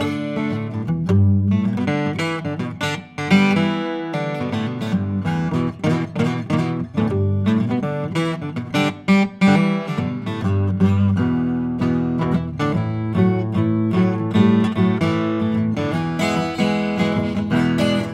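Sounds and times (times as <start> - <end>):
Guild 12-string electric acoustic guitar improvisation: 0.0 - 18.1.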